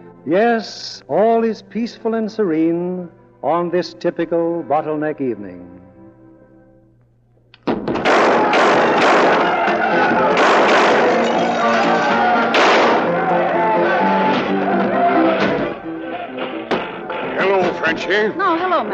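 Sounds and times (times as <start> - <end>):
speech: 0.2 - 5.8, 17.9 - 18.9
bar brawl thuds, bangs and crashes: 7.6 - 13.2, 16.4 - 17.8
shouting voices in a tavern bar brawl: 8.0 - 17.9.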